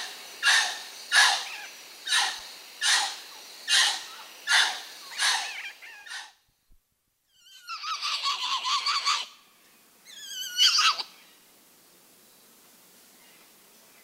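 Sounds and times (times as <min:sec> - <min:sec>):
muriqui chirps: 0:00.4 - 0:06.3, 0:07.3 - 0:09.4, 0:10.1 - 0:11.2.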